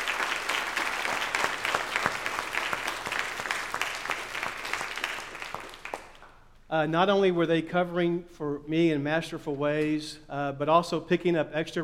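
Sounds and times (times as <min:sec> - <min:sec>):
audience applause: 0:00.0 - 0:06.3
speech: 0:06.7 - 0:11.8.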